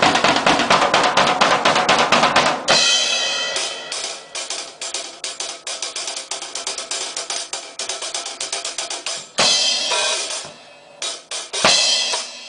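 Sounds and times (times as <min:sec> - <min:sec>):
drums playing: 0:00.0 - 0:12.4.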